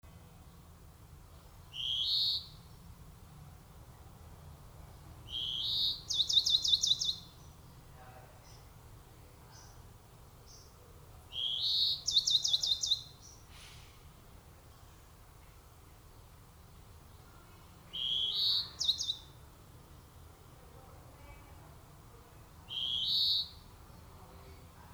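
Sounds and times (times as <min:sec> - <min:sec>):
European greenfinch calling: 0:01.7 - 0:02.7, 0:05.2 - 0:07.6, 0:11.3 - 0:13.8, 0:17.9 - 0:19.4, 0:22.6 - 0:23.8.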